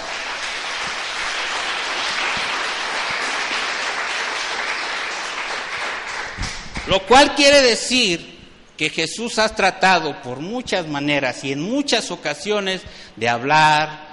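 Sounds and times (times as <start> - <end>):
audience applauding: 0.0 - 7.0
speech: 6.9 - 14.0.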